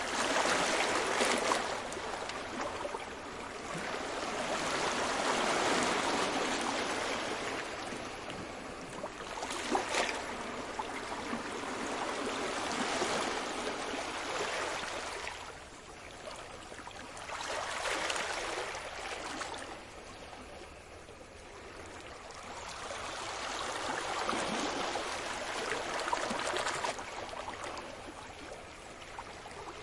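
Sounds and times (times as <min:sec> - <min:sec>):
sea waves at night in Cyprus: 0:00.0 - 0:29.8.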